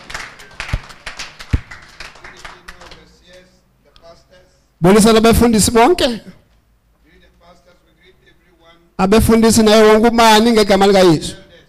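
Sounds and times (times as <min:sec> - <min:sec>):
audience clapping hands in praise: 0:00.0 - 0:03.5
speech: 0:04.8 - 0:06.3, 0:09.0 - 0:11.4.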